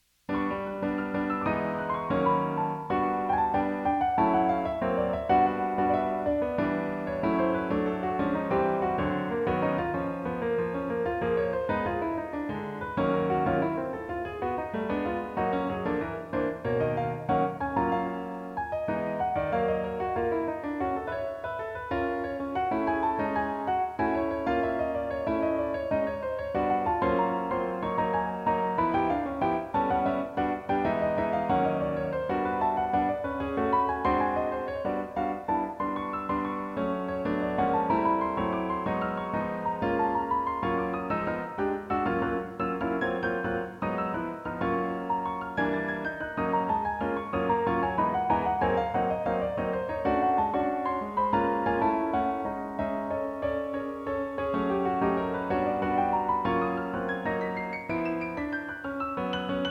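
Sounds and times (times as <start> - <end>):
solo piano: 0.0 - 59.6.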